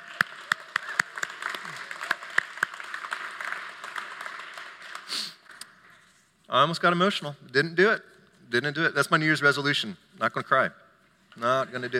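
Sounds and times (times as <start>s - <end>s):
audience clapping: 0.0s - 6.0s
speech: 6.5s - 10.8s, 11.4s - 11.9s.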